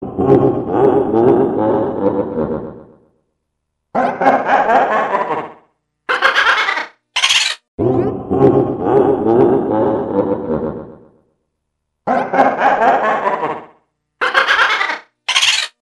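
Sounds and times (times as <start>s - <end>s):
Boo ghost laughing: 0.0s - 3.0s, 4.0s - 7.0s, 7.8s - 11.2s, 12.0s - 15.1s.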